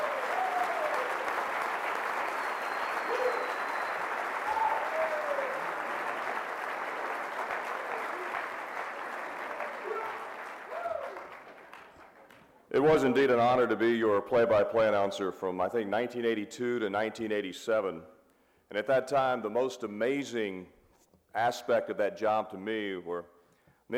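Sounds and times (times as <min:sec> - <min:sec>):
audience applause welcoming a television announcer at a proclamation ceremony: 0:00.0 - 0:12.5
speech: 0:12.8 - 0:18.1, 0:18.7 - 0:23.3.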